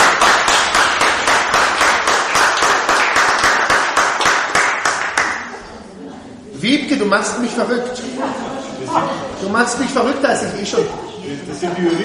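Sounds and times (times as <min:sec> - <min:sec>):
audience applause: 0:00.0 - 0:05.6
speech: 0:07.1 - 0:08.3, 0:08.9 - 0:12.0.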